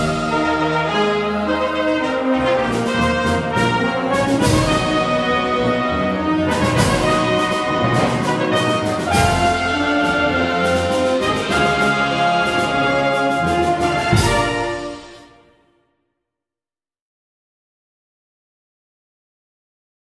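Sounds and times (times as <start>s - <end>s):
fanfare: 0.0s - 15.8s.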